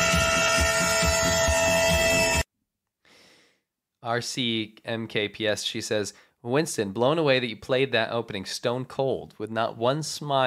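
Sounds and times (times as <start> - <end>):
train horn: 0.0 - 2.4
speech: 4.0 - 10.4.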